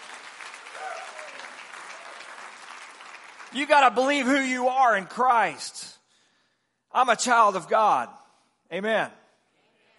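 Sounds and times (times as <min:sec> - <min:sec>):
church congregation clapping hands in praise: 0:00.0 - 0:05.6
speech: 0:03.5 - 0:05.9, 0:06.9 - 0:09.2.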